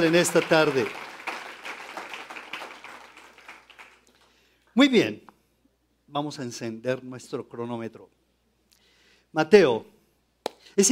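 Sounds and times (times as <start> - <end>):
speech: 0.0 - 1.0, 4.8 - 5.3, 6.1 - 8.2, 9.3 - 9.9, 10.7 - 10.9
audience applause: 0.0 - 4.3.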